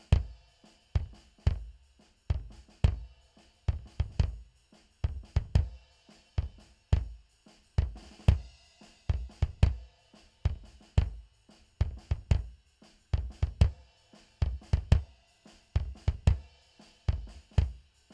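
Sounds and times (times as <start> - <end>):
mono bass drum: 0.0 - 0.4, 1.0 - 5.8, 9.1 - 9.8, 10.5 - 12.6, 13.2 - 15.1, 15.8 - 16.5, 17.1 - 17.8.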